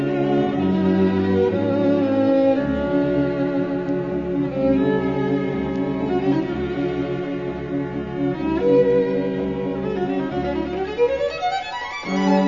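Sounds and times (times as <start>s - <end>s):
string quartet playing in D major: 0.0s - 12.4s.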